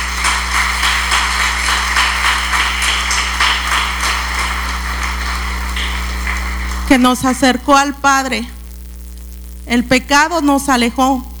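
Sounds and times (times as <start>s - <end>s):
audience applause: 0.0s - 7.6s
speech: 6.9s - 8.6s, 9.6s - 11.3s.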